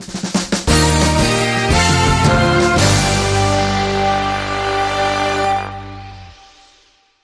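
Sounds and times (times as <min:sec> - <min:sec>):
headline news music bed: 0:00.0 - 0:06.8
musical sting: 0:00.7 - 0:06.9.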